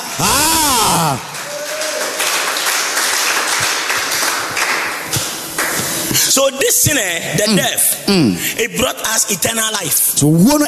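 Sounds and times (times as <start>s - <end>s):
swooping vocal cry: 0.0s - 1.4s
audience clapping: 0.0s - 6.2s
speech: 0.2s - 0.5s, 1.1s - 1.3s, 6.4s - 10.6s.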